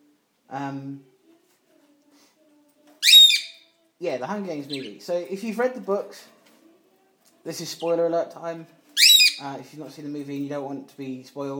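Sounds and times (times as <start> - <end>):
speech: 0.5 - 1.1, 4.0 - 6.4, 7.4 - 8.8, 9.4 - 11.5
pet bird squawking: 3.0 - 3.6, 9.0 - 9.4.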